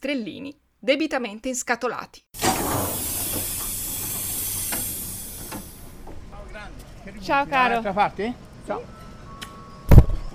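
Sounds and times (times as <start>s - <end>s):
speech: 0.0s - 2.9s, 7.2s - 9.0s
train hissing at a station platform in Poggibonsi: 2.4s - 9.7s.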